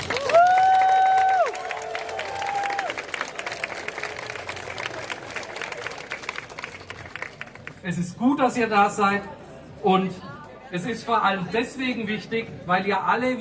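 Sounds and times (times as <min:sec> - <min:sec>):
crowd applause: 0:00.0 - 0:07.8
speech: 0:07.9 - 0:13.3.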